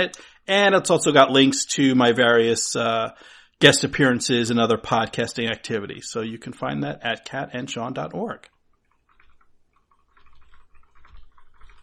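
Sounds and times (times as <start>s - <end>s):
speech: 0.0s - 8.5s
typing on a keyboard: 9.0s - 11.8s.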